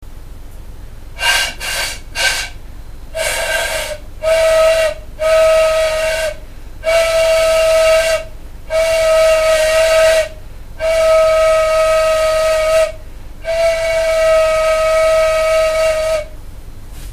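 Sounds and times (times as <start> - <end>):
flute: 3.2 - 16.4.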